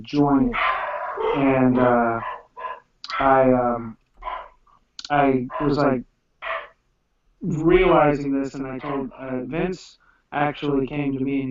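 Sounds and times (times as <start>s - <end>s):
speech: 0.0s - 2.3s, 3.2s - 4.0s, 5.1s - 6.1s, 7.4s - 11.4s
dogs barking loudly: 0.3s - 3.4s, 4.2s - 4.6s, 5.4s - 6.8s, 8.7s - 9.2s.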